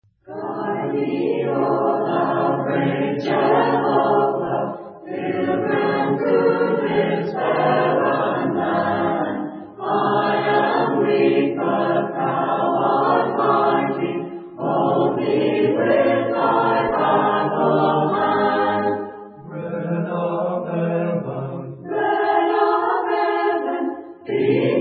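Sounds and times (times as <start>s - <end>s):
a cappella hymn: 0.2s - 24.7s.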